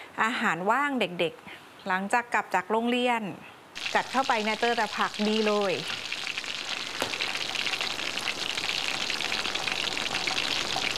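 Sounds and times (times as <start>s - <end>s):
speech: 0.2s - 6.0s
vegetable fritters frying in hot oil: 3.8s - 10.9s.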